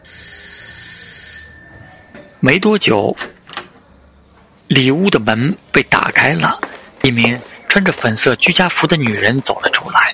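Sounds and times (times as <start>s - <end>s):
doorbell ringing: 0.0s - 2.4s
speech: 2.2s - 3.3s, 4.7s - 10.1s.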